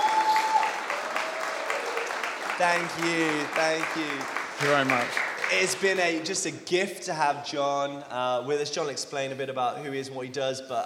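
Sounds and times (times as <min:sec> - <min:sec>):
crowd clapping: 0:00.0 - 0:06.5
speech: 0:02.6 - 0:10.8.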